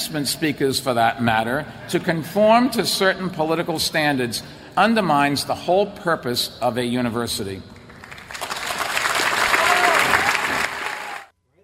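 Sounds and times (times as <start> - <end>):
speech: 0.1 - 7.7
large university audience applauding: 8.0 - 11.3.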